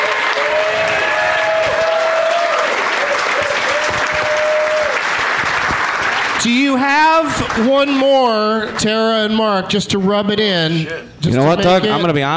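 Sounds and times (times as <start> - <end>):
audience applause: 0.0 - 7.9
speech: 6.4 - 12.3.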